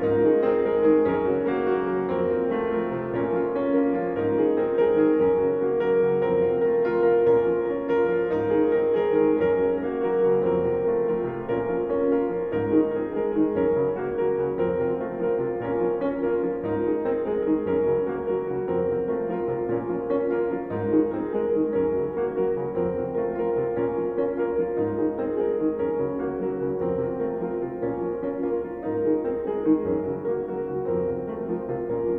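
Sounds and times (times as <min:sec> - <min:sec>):
minimal piano piece: 0:00.0 - 0:32.1.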